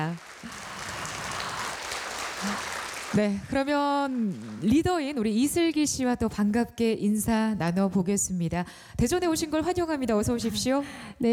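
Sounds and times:
speech: 0:00.0 - 0:00.3, 0:02.4 - 0:11.3
audience applause after an ensemble's stage performance in Daejeon: 0:00.0 - 0:04.9.

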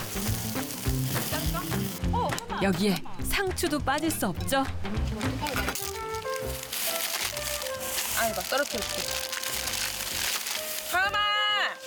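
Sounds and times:
meat sizzling on a barbecue grill: 0:00.0 - 0:02.0, 0:05.5 - 0:11.2
speech: 0:02.6 - 0:05.9, 0:08.2 - 0:09.3.

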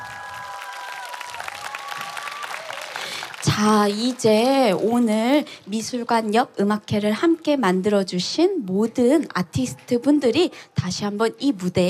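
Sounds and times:
crowd applauding: 0:00.0 - 0:04.3
speech: 0:03.5 - 0:11.8.

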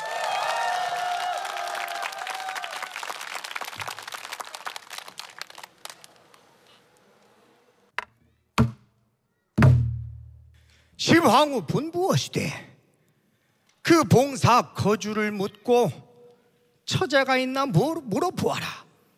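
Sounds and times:
audience applause: 0:00.0 - 0:06.7
speech: 0:11.1 - 0:12.7, 0:13.9 - 0:16.0, 0:16.9 - 0:18.8.

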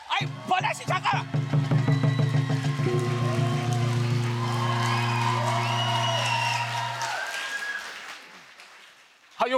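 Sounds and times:
audience applause: 0:00.3 - 0:09.4.

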